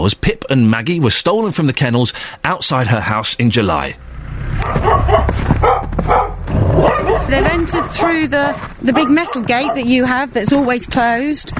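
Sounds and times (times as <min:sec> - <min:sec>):
speech: 0:00.0 - 0:06.2, 0:07.3 - 0:11.5
dogs barking in kennels: 0:04.6 - 0:10.2.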